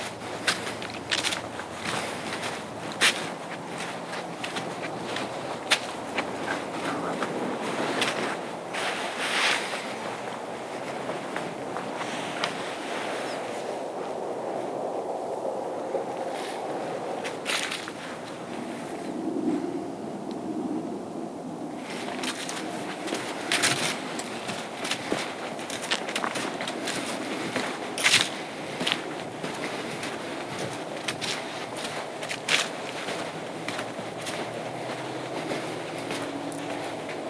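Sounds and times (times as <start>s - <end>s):
sharp crackles and snaps: 0.0s - 12.6s, 22.0s - 37.2s
low rumble and rushing wash on Appleton Trail night hike: 0.0s - 37.2s.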